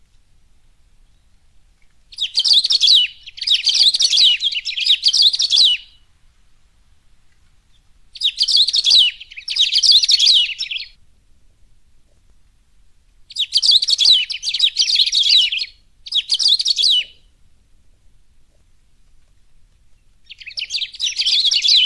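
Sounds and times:
Saffron-billed sparrow singing rapid tangled twittering phrases: 2.1 - 6.0, 7.7 - 11.0, 13.3 - 17.3, 19.9 - 21.8.

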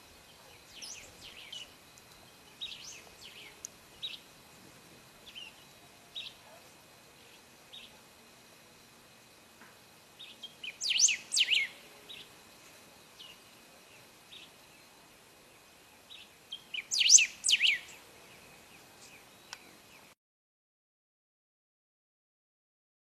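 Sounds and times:
blue straight-billed bird singing: 0.2 - 4.3, 5.2 - 8.0, 10.2 - 12.5, 13.1 - 20.2.

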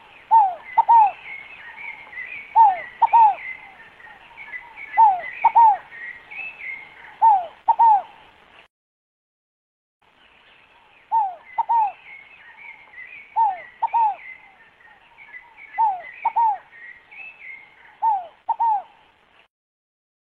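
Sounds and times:
other birds twittering: 0.0 - 8.2, 10.2 - 19.0
scaled dove cooing: 0.0 - 8.2, 11.1 - 12.0, 13.4 - 14.4, 15.7 - 16.7, 18.0 - 19.0.

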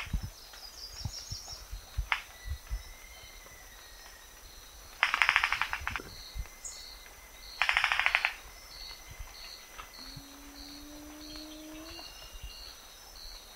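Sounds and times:
Rufous-vented ground cuckoo bill clapping: 5.0 - 6.5, 7.6 - 9.0, 9.7 - 12.4.

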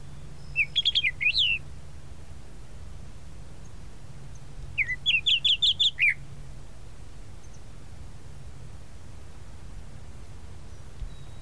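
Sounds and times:
tropical mockingbird song: 0.0 - 1.7, 3.6 - 6.2, 10.7 - 11.4.

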